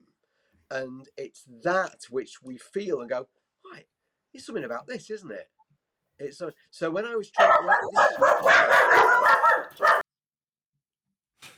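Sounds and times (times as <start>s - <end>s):
speech: 0.7s - 5.6s, 6.2s - 9.9s
person imitating a dog barking: 7.4s - 10.0s.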